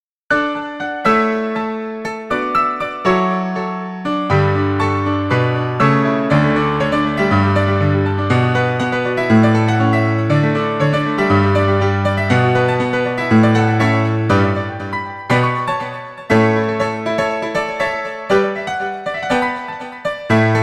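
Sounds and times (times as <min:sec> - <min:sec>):
piano medley: 0:00.3 - 0:20.6.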